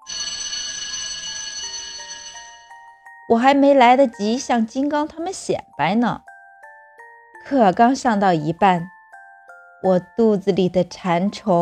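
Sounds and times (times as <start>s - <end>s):
school class bell ringing: 0.0s - 2.9s
speech: 3.3s - 6.3s, 7.5s - 8.9s, 9.8s - 11.6s.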